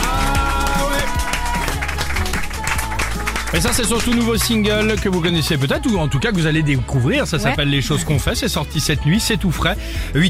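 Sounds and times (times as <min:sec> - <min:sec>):
audience applauding: 0:00.0 - 0:06.1
speech: 0:03.5 - 0:10.2.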